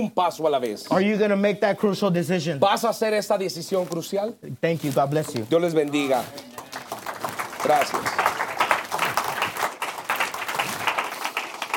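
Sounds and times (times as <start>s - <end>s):
speech: 0.0s - 6.5s, 7.6s - 8.2s
audience applause: 6.3s - 11.7s.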